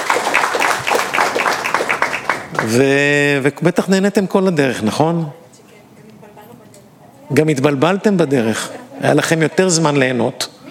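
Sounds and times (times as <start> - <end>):
audience applause: 0.0 - 3.1
speech: 2.6 - 5.4, 7.3 - 10.6.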